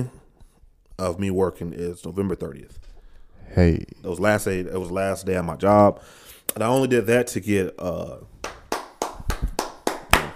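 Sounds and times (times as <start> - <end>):
speech: 1.0 - 2.9, 3.5 - 8.3
people clapping: 8.4 - 10.3.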